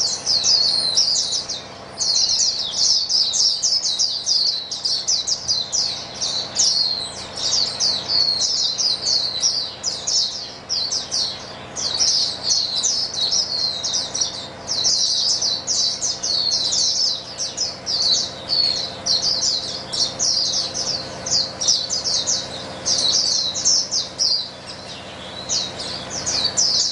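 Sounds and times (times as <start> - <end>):
many white-eyes twittering: 0.0 - 26.9.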